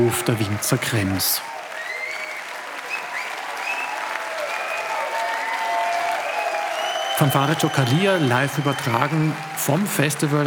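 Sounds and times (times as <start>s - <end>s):
speech: 0.0s - 1.5s, 7.2s - 10.4s
festival audience clapping for a band after the last encore in a winery courtyard in Krems: 0.0s - 10.4s
audience high whistles: 1.8s - 5.6s, 6.2s - 9.7s.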